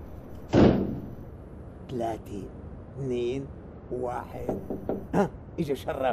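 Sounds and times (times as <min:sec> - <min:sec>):
door slamming shut: 0:00.5 - 0:01.2
speech: 0:01.9 - 0:06.1.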